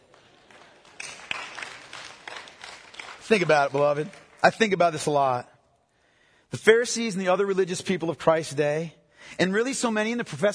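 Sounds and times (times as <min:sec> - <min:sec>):
audience clapping: 0:00.0 - 0:05.4
speech: 0:03.3 - 0:05.5, 0:06.5 - 0:10.5.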